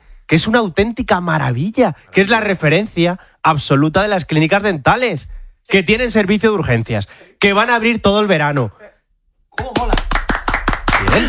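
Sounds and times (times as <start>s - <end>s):
speech: 0.3s - 8.8s
audience applause: 9.6s - 11.2s.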